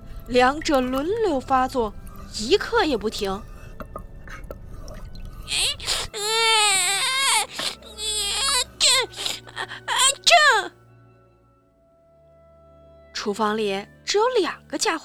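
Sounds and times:
speech: 0.3s - 3.5s, 13.3s - 15.0s
baby crying and wailing: 5.5s - 10.7s.

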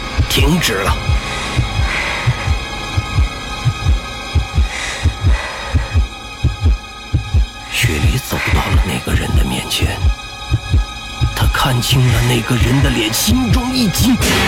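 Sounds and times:
loud heartbeat: 0.0s - 11.5s
speech: 0.4s - 1.2s, 7.8s - 10.2s, 11.6s - 14.4s.

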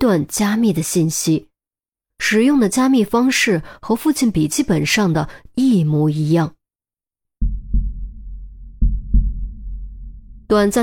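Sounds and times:
speech: 0.0s - 1.5s, 2.2s - 6.6s, 10.5s - 10.8s
dull rumble: 7.4s - 10.8s
heartbeat pounding: 7.4s - 10.8s.

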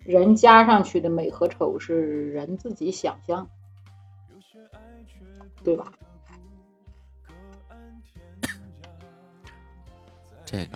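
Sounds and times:
speech: 0.1s - 3.6s, 4.6s - 6.1s, 10.5s - 10.7s
cough: 8.4s - 8.7s.

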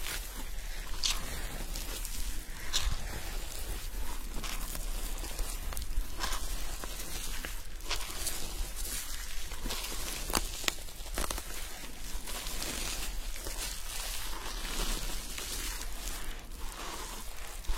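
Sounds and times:
scratching and rustling during hair washing with a scalp massage: 0.0s - 17.7s.

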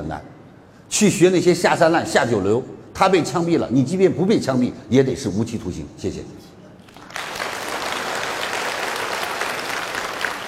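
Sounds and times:
speech: 0.0s - 6.5s
audience applause: 7.0s - 10.4s.

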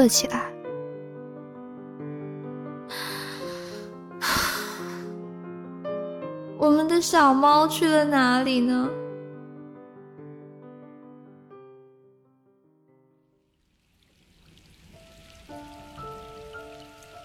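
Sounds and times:
speech: 0.0s - 0.5s, 7.0s - 9.0s
heavy rain pouring outside: 2.9s - 5.0s, 13.9s - 17.2s
gentle musical tones: 14.6s - 17.2s.

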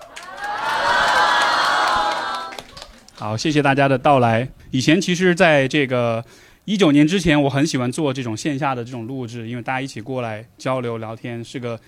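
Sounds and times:
live audience shouting hello together: 0.0s - 2.8s
speech: 3.2s - 11.8s.

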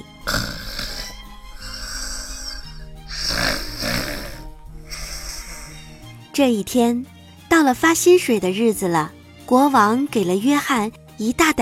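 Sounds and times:
loud snoring: 0.0s - 6.2s
speech: 6.4s - 11.5s.

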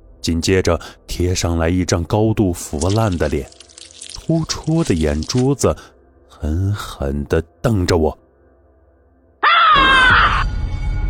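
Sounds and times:
speech: 0.2s - 3.6s, 4.3s - 8.2s
loud terrified yell: 9.4s - 10.4s.

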